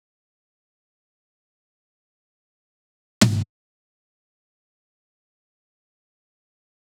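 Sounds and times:
short tom drum loop: 3.2 - 3.5.

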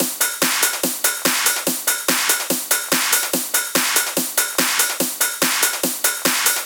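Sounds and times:
144 BPM drum and percussion loop: 0.0 - 6.6.

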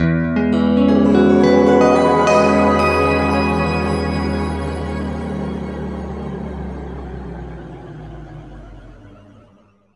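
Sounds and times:
guitar chords in E: 0.0 - 6.8.

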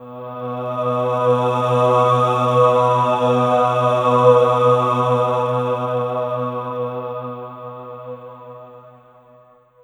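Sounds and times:
synth pad: 0.0 - 8.8.

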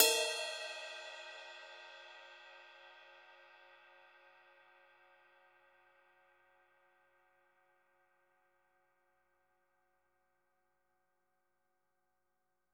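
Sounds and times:
cymbal: 0.0 - 6.2.

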